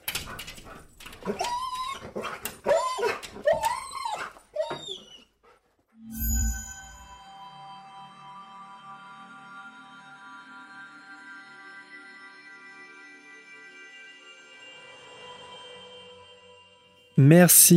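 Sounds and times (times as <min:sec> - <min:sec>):
dog whining: 0:00.6 - 0:05.6
speech: 0:01.2 - 0:01.5, 0:17.2 - 0:17.7
sustained ringing tone: 0:06.0 - 0:07.4.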